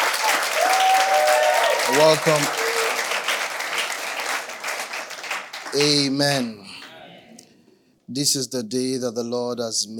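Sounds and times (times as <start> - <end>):
audience applause at a church service: 0.0 - 6.4
vocal cheer: 0.2 - 3.0
speech: 1.9 - 2.6, 5.7 - 6.8, 8.1 - 9.9.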